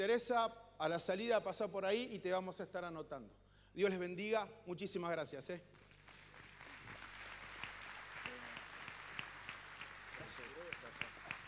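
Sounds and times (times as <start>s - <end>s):
speech: 0.0s - 5.9s, 10.4s - 11.4s
audience applause: 6.0s - 11.4s.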